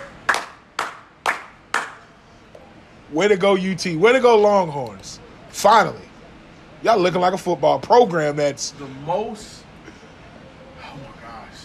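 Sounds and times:
hand clapping: 0.0s - 2.1s
speech: 3.1s - 6.1s, 6.8s - 9.6s.

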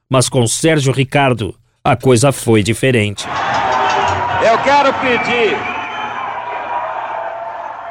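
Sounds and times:
speech: 0.1s - 3.5s, 4.4s - 5.7s
festival crowd booing and cheering: 3.2s - 7.9s.

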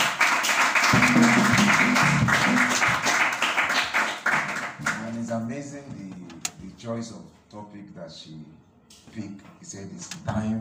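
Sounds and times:
crowd clapping: 0.0s - 5.3s
speech: 6.8s - 10.5s.

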